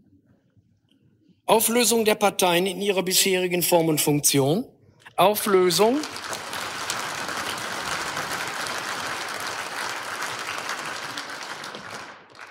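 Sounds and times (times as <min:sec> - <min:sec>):
speech: 0:01.5 - 0:06.4
audience applause: 0:05.5 - 0:12.4.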